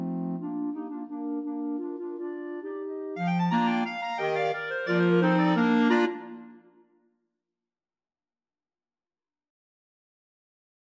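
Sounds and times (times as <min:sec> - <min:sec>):
clarinet choir playing: 0:00.0 - 0:06.6.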